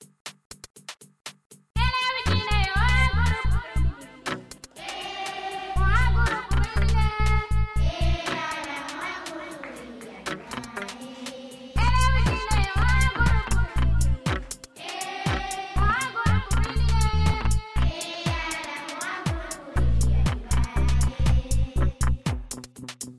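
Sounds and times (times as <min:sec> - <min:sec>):
African school song: 0:01.8 - 0:22.5.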